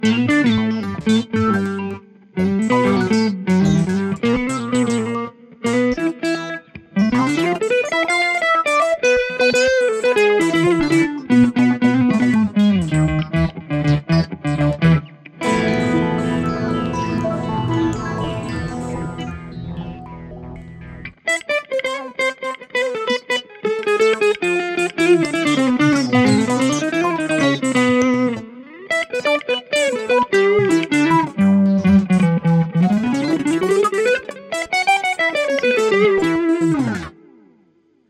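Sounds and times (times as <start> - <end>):
guitar: 0.0 - 38.0.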